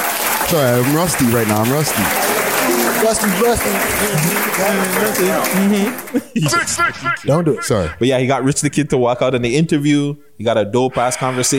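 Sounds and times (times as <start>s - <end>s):
round of applause sound effect: 0.0s - 6.3s
laughter: 0.4s - 8.8s
speech: 0.5s - 2.2s, 3.0s - 11.5s.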